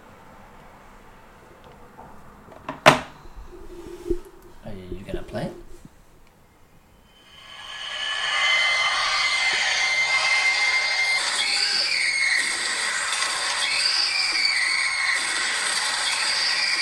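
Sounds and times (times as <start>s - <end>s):
speech: 5.3s - 5.6s
sped-up scream sound effect: 7.1s - 16.7s.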